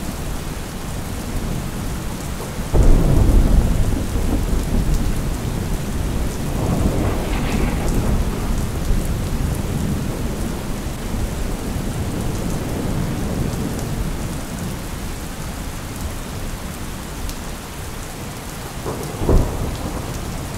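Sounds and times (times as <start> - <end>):
rain: 0.0 - 20.5
thunder: 2.7 - 14.7, 18.8 - 20.5.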